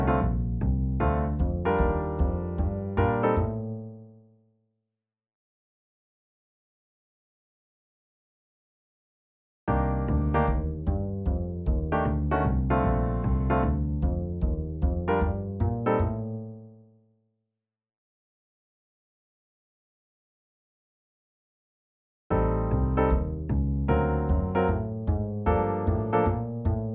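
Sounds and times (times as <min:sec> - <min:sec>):
etude without drums: 0:00.0 - 0:03.7, 0:09.7 - 0:16.4, 0:22.3 - 0:26.9.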